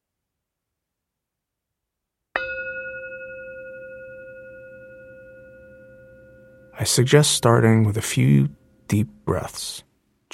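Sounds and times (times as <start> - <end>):
meditation bell ringing: 2.4 - 7.6
speech: 6.8 - 10.3.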